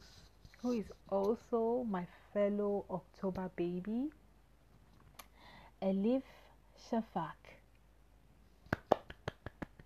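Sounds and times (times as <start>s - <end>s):
speech: 0.6s - 4.2s, 5.8s - 7.5s
hand clapping: 8.7s - 9.8s.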